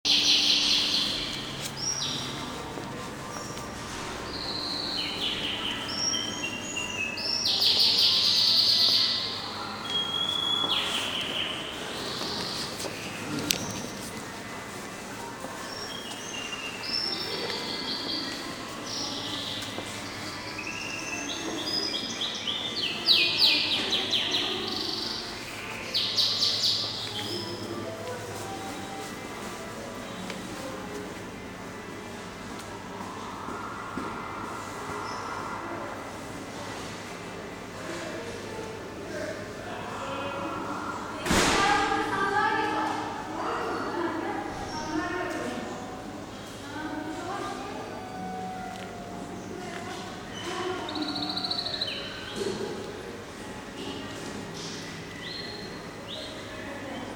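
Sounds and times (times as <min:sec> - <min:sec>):
Eminonu Dorduncu business centre ambience: 0:00.0 - 0:57.1.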